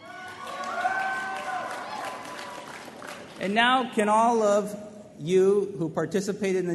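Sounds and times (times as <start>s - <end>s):
high shouts: 0.0s - 2.8s
convention audience cheering: 0.0s - 3.5s
speech: 3.4s - 6.7s.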